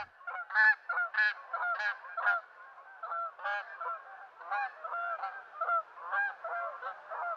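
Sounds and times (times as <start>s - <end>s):
Canada geese honking: 0.0s - 7.3s.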